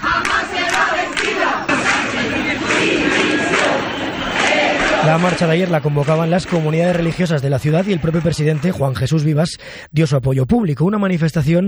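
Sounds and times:
protest march crowd in Ceuta chanting slogans: 0.0s - 8.2s
speech: 5.1s - 11.6s.

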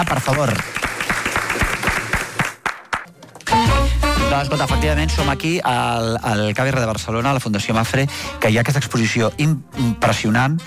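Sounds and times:
speech: 0.0s - 0.9s, 4.3s - 10.6s
audience applause: 0.0s - 3.1s.

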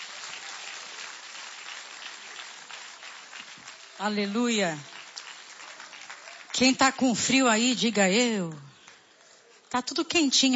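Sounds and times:
audience applause: 0.0s - 7.1s
speech: 4.0s - 4.9s, 6.6s - 8.7s, 9.7s - 10.5s.

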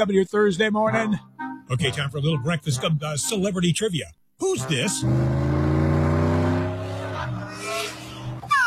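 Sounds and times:
speech: 0.0s - 5.5s
car engine revving: 4.9s - 8.4s
tires squealing: 5.0s - 8.5s.

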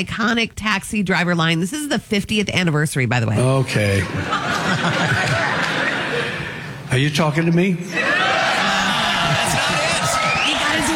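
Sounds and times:
speech: 0.0s - 5.4s, 6.9s - 8.2s
laughter: 3.4s - 6.8s, 7.9s - 10.9s
audience clapping: 4.5s - 6.2s, 8.7s - 10.9s.

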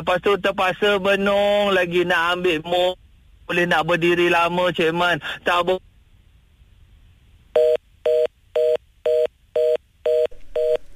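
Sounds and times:
speech: 0.0s - 5.9s
faint hiss: 0.0s - 10.9s
telephone keypad tones dialing out: 7.6s - 10.9s.

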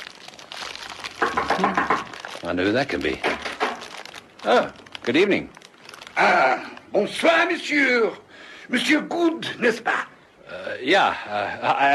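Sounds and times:
eggs sizzling in hot fat in frying pan: 0.0s - 6.2s
speech: 1.2s - 3.4s, 4.4s - 5.6s, 6.2s - 10.1s, 10.8s - 11.9s.

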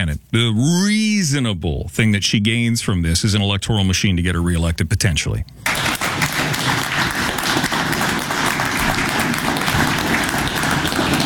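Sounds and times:
speech: 0.0s - 6.0s
audience clapping: 5.6s - 11.2s.

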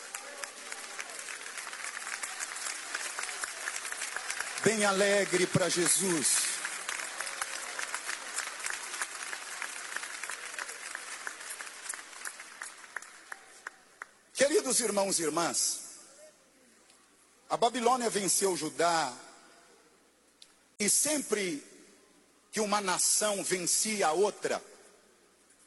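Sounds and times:
audience applause: 0.0s - 14.1s
speech: 4.6s - 6.6s, 14.7s - 15.8s, 17.5s - 19.2s, 20.8s - 21.7s, 22.6s - 24.7s.

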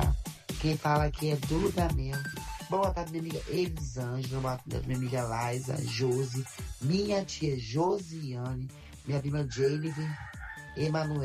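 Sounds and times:
speech: 0.6s - 11.2s
rooster crowing: 9.4s - 11.2s.

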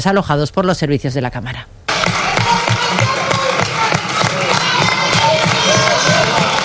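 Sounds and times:
speech: 0.0s - 1.8s
protesters shouting in parliament chamber: 1.9s - 6.6s.

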